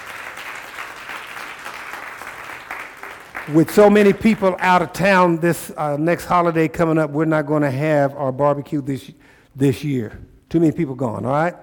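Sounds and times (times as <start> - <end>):
audience hand clapping: 0.0 - 5.0
speech: 3.4 - 11.6.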